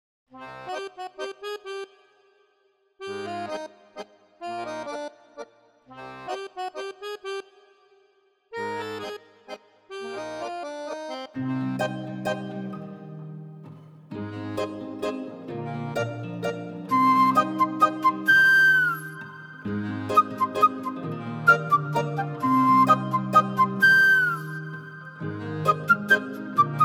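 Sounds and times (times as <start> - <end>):
accordion background score: 0.4 - 26.8.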